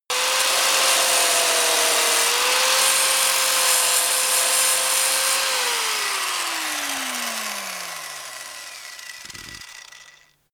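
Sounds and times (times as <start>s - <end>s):
grinder deep on load stopping: 0.1s - 10.4s.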